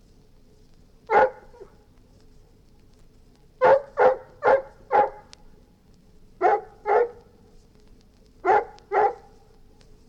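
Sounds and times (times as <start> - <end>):
golden retriever barking: 1.1 - 1.8, 3.6 - 5.3, 6.4 - 7.2, 8.4 - 9.4.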